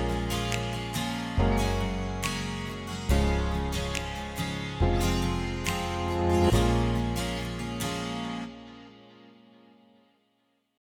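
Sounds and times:
pop R&B music: 0:00.0 - 0:08.2.

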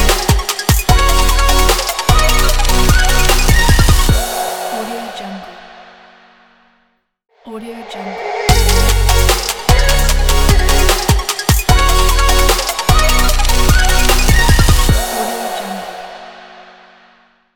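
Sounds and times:
future bass fashion intro logo music: 0:00.0 - 0:04.9, 0:08.5 - 0:15.6.

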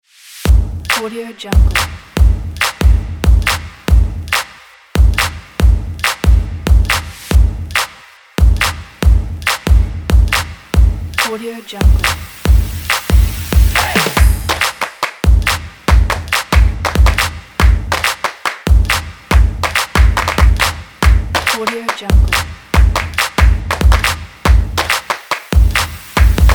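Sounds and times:
fast drums: 0:00.5 - 0:26.5.

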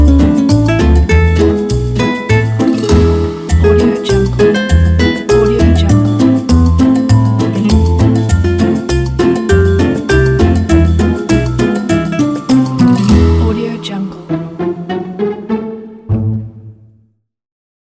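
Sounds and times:
light comedy scoring: 0:00.0 - 0:17.1.

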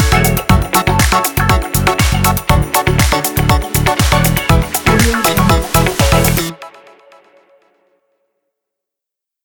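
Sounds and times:
disco drum kit: 0:00.0 - 0:06.6.

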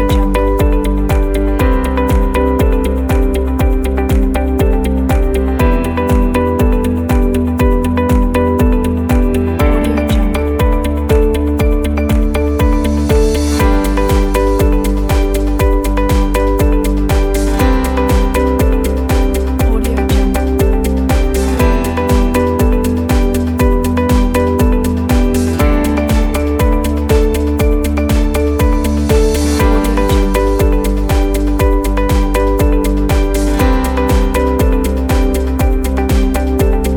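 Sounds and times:
optimistic corporate music: 0:00.0 - 0:36.9.

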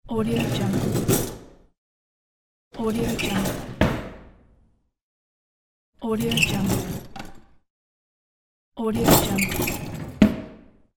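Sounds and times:
kitchen drawer: 0:00.3 - 0:01.6, 0:02.9 - 0:04.1, 0:06.2 - 0:07.4, 0:09.0 - 0:10.4.

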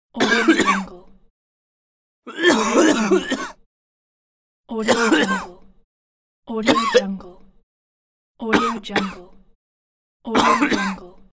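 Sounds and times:
person coughing: 0:00.2 - 0:01.0, 0:02.3 - 0:03.6, 0:04.8 - 0:05.6, 0:06.6 - 0:07.3, 0:08.5 - 0:09.4, 0:10.3 - 0:11.3.

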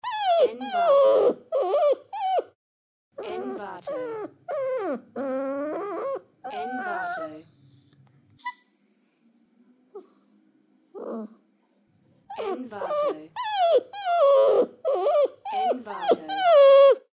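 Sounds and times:
puppy crying: 0:00.0 - 0:02.6, 0:03.2 - 0:07.4, 0:12.3 - 0:17.1.

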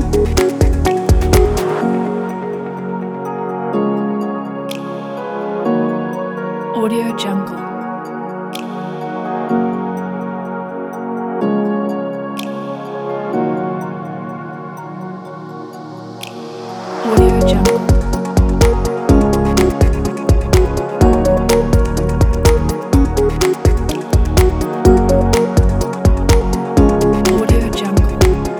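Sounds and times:
ambient atmospheric corporate background music: 0:00.0 - 0:28.5.

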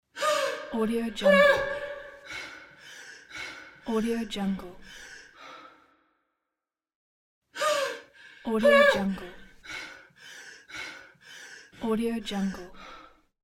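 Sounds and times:
woman panicked breathing: 0:00.1 - 0:03.9, 0:04.8 - 0:05.9, 0:07.6 - 0:11.8.

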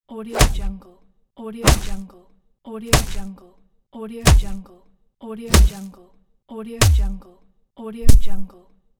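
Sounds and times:
cartoon punches: 0:00.4 - 0:00.8, 0:01.6 - 0:02.0, 0:02.9 - 0:03.3, 0:04.2 - 0:04.6, 0:05.5 - 0:05.9, 0:06.8 - 0:07.2.

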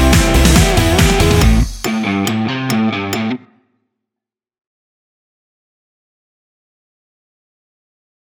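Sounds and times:
upbeat rock music: 0:00.0 - 0:03.5.

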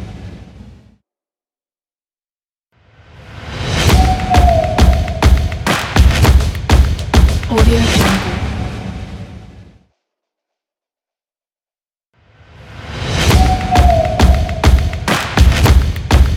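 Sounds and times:
stomp intro music: 0:03.9 - 0:08.6, 0:13.3 - 0:16.3.

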